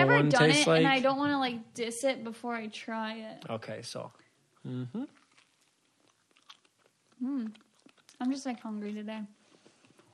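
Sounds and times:
speech: 0:00.2 - 0:05.2, 0:07.2 - 0:07.6, 0:08.2 - 0:09.4
biting and chewing a peanut butter and jelly sandwich: 0:03.3 - 0:10.1
short vocal sounds: 0:04.6 - 0:05.2.

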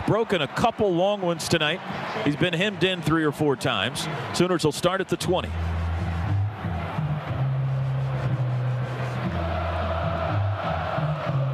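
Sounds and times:
large stadium crowd cheering: 0:00.0 - 0:11.5
speech: 0:00.1 - 0:05.8.

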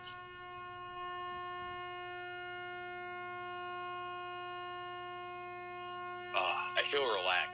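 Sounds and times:
faint high chirps: 0:00.0 - 0:00.2, 0:01.0 - 0:01.4
loud truck horn blaring: 0:00.0 - 0:07.5
speech: 0:06.9 - 0:07.5.

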